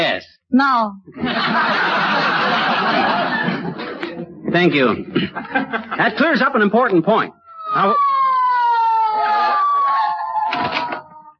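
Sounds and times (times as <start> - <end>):
speech: 0.5 - 3.5, 4.5 - 8.3
laughter: 1.1 - 6.6, 8.6 - 11.0
police squad car siren wailing: 7.3 - 11.3.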